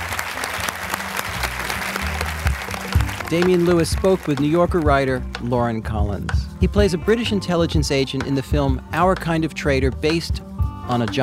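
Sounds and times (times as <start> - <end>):
audience applause: 0.0 - 4.9
speech: 3.3 - 11.2.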